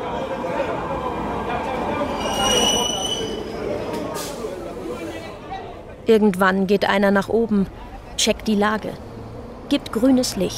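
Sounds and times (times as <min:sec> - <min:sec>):
faint murmuring voices: 0:00.0 - 0:06.0
metro train rumbling through underground Plaza de Catalunya metro station: 0:00.0 - 0:06.0
thin high-pitched metro train wheel squeals: 0:02.0 - 0:04.3
speech: 0:06.1 - 0:09.1, 0:09.7 - 0:10.5.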